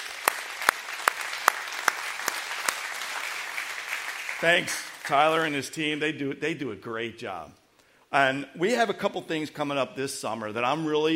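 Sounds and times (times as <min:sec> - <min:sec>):
audience applause: 0:00.0 - 0:05.5
speech: 0:04.4 - 0:11.1.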